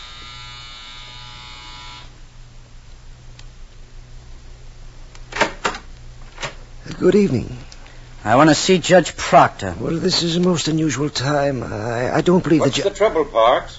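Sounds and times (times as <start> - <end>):
harsh electric doorbell buzzer: 0.0 - 2.2
speech: 7.0 - 7.6, 8.2 - 13.7.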